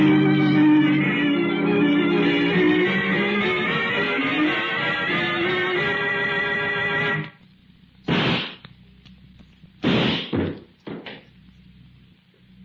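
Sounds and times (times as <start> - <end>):
music: 0.0 - 7.4
gunshot sound effect in a radio drama struggle: 8.1 - 8.6, 9.8 - 10.4.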